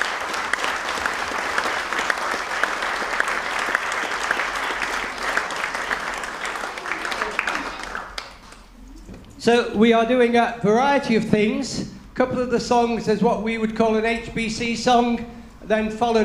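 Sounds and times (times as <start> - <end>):
audience applause: 0.0 - 8.7
speech: 9.4 - 16.2.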